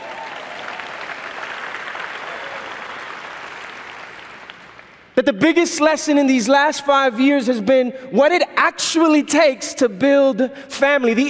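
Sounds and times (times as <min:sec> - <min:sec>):
audience applauding: 0:00.0 - 0:05.2
speech: 0:05.2 - 0:11.2.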